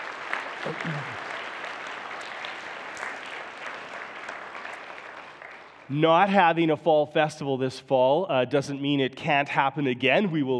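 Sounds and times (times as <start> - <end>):
audience applause: 0.0 - 5.9
speech: 0.6 - 1.2, 5.9 - 10.5.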